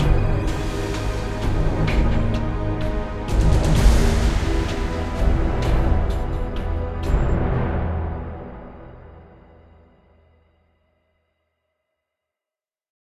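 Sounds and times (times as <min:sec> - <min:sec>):
low boss battle music: 0:00.0 - 0:09.4.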